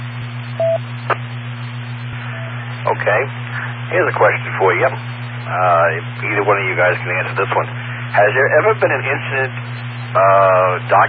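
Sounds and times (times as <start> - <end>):
telephone beeps: 0.6 - 0.8
speech: 2.9 - 11.0.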